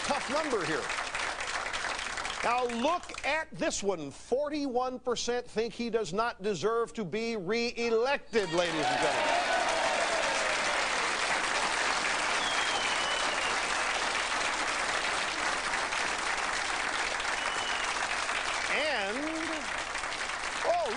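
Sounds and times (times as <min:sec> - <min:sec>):
studio audience applause: 0:00.0 - 0:03.3, 0:08.4 - 0:20.9
speech: 0:00.3 - 0:01.0, 0:02.4 - 0:09.4.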